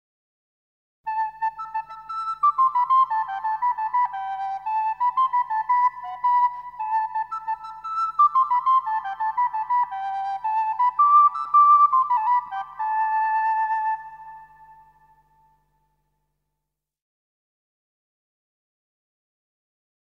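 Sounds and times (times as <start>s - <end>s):
solo flute monody: 1.1s - 16.1s.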